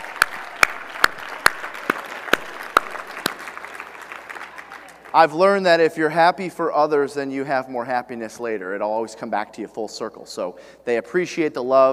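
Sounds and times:
slow clapping of one or two people: 0.0 - 5.2
speech: 5.2 - 11.9.

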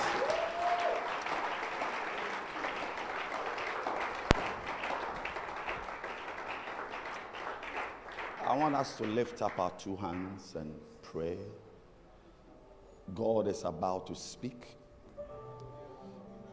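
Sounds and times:
crowd clapping: 0.0 - 10.4
speech: 8.6 - 11.7, 13.1 - 14.8.

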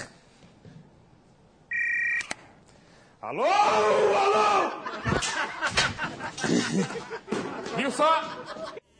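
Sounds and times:
mobile phone ringing: 1.7 - 2.4
speech: 3.2 - 4.4, 6.2 - 8.8
laughter: 4.5 - 8.8.

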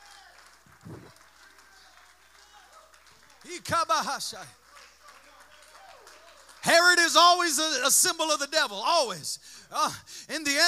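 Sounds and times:
audience clapping hands: 0.0 - 7.9
speech: 3.4 - 4.6, 6.7 - 10.6.

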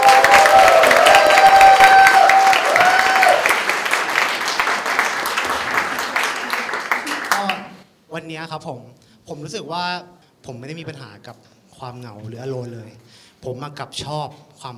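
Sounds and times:
cheering and whistles: 0.0 - 3.6
audience applause: 0.0 - 7.8
speech: 8.5 - 14.7.

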